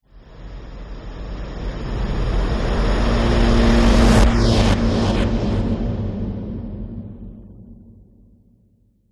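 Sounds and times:
whoosh: 1.8s - 7.7s.

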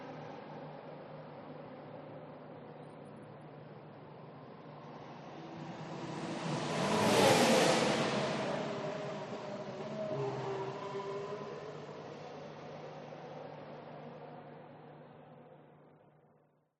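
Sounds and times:
F1 race car passing at speed on race track: 5.0s - 13.4s.

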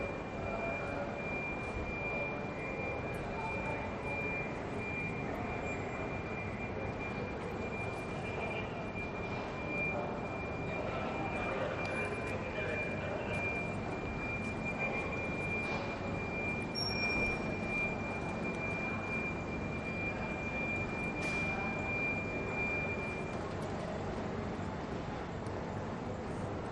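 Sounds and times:
crowd at Piccadilly train station in Manchester UK: 0.0s - 26.7s.

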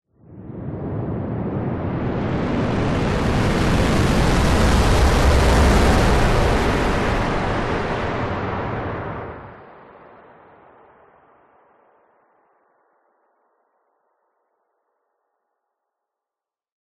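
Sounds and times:
whoosh: 0.2s - 10.0s.

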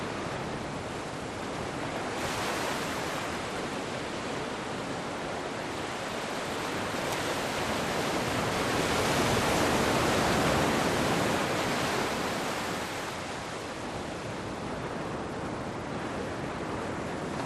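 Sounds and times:
waves breaking on a beach in a cove at night: 0.0s - 17.4s
wind on a beach: 0.0s - 17.4s.

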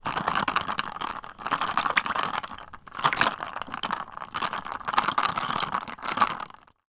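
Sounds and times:
ice shaking in a cup: 0.0s - 6.8s.

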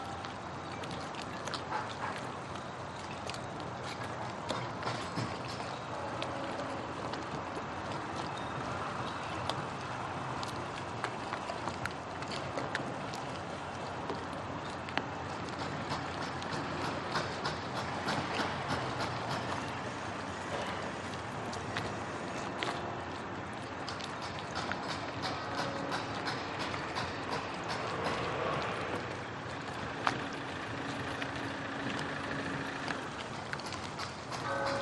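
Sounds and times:
boats at a marina: 0.0s - 34.8s
marina traffic: 0.0s - 34.8s
waves at a marina: 0.0s - 34.8s
construction noise: 4.3s - 10.3s, 15.2s - 34.8s.

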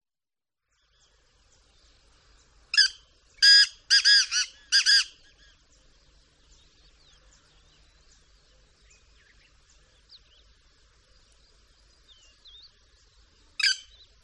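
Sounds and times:
black francolin giving harsh creaking calls: 2.7s - 5.6s, 13.6s - 14.2s.

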